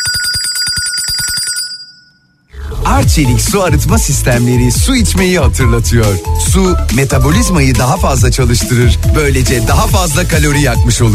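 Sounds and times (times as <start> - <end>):
telephone ringtone: 0.0 - 2.5
speech: 3.0 - 11.1.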